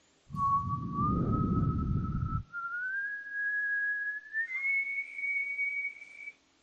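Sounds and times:
low rumble: 0.3s - 2.5s
soft gentle whistle: 0.3s - 6.4s.

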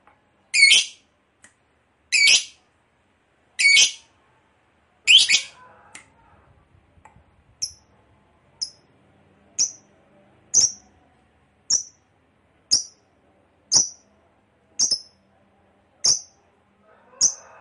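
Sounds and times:
low background hum: 0.0s - 17.6s
lovebird chirping: 0.5s - 1.0s, 2.1s - 2.6s, 3.6s - 4.0s, 5.1s - 5.6s, 7.6s - 7.8s, 8.6s - 8.8s, 9.6s - 9.9s, 10.5s - 10.9s, 11.7s - 12.0s, 12.7s - 13.0s, 13.7s - 14.1s, 14.8s - 15.2s, 16.0s - 16.4s, 17.2s - 17.4s.

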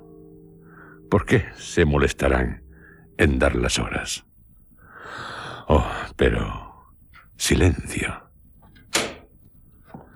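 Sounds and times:
speech: 1.1s - 2.6s, 3.2s - 4.3s, 5.1s - 6.6s, 7.4s - 8.2s
room door opening with a sharp clack: 8.9s - 9.3s.

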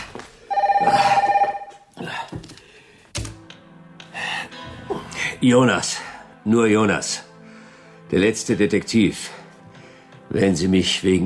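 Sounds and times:
telephone ringing in the middle of the night: 0.5s - 1.9s
speech: 5.4s - 7.3s, 8.1s - 9.4s, 10.4s - 11.2s.

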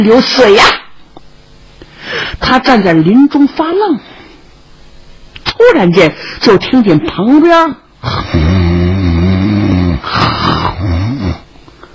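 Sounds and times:
speech: 0.0s - 0.8s, 2.4s - 4.2s, 5.6s - 8.6s
person imitating loud snoring: 8.0s - 11.5s.

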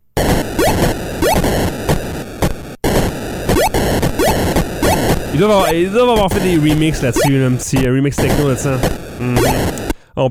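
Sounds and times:
Space Invaders arcade game sound effects: 0.2s - 1.7s, 3.5s - 9.9s
speech: 5.4s - 10.2s.

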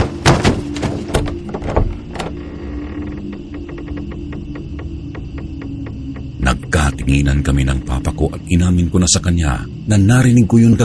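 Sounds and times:
loud banging: 0.0s - 2.3s
playroom doorknob turning: 0.0s - 5.9s
speech: 7.1s - 10.8s.

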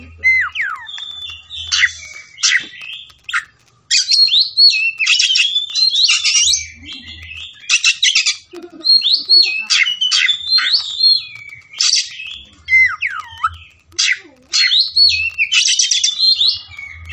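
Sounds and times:
Oriental magpie-robin singing: 0.0s - 17.1s.

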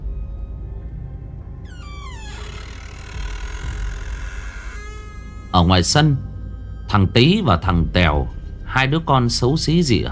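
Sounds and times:
door slowly creaking open: 1.6s - 6.5s
speech: 5.6s - 6.3s, 6.9s - 10.0s.

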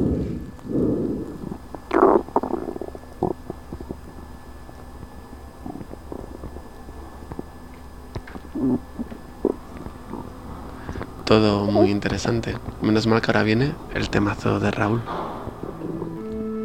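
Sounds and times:
stomach rumbling: 0.0s - 16.5s
speech: 11.3s - 15.2s.

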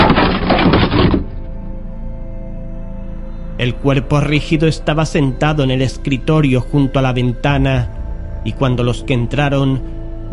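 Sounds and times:
door being forced open by a police officer: 0.0s - 1.5s
speech: 3.6s - 10.3s.

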